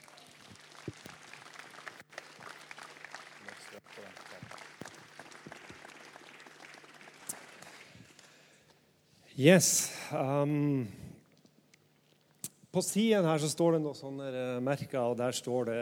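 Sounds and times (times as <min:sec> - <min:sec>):
audience applause: 0:00.0 - 0:08.2
speech: 0:09.4 - 0:11.0, 0:12.7 - 0:15.8.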